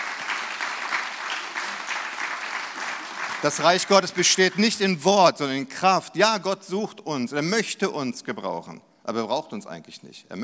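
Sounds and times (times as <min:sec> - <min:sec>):
crowd clapping: 0:00.0 - 0:04.9
speech: 0:03.4 - 0:10.4.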